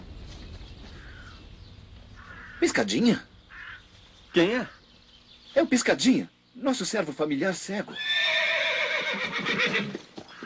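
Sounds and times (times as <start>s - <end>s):
speech: 2.6s - 3.3s, 4.4s - 4.8s, 5.6s - 8.3s, 9.1s - 10.0s
horse from a comic Robin Hood film neighing: 7.9s - 10.4s.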